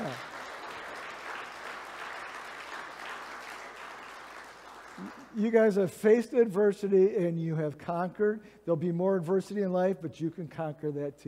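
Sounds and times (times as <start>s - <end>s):
audience applauding graduates: 0.0s - 5.4s
speech: 5.0s - 11.2s.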